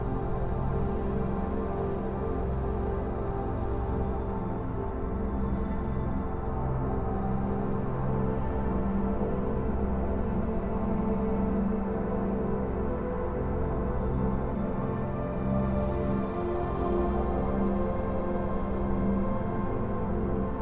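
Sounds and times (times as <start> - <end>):
ambient soundscape flute: 0.0 - 20.6.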